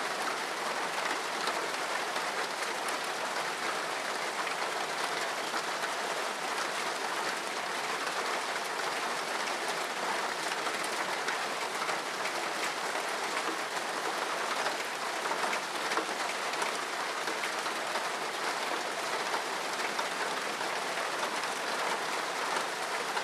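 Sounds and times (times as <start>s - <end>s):
heavy rain striking a surface: 0.0s - 23.2s.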